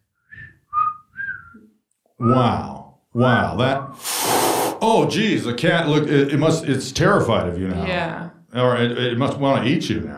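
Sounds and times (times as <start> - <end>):
person whistling bird call: 0.2 - 2.4
speech: 2.2 - 4.1, 4.8 - 10.1.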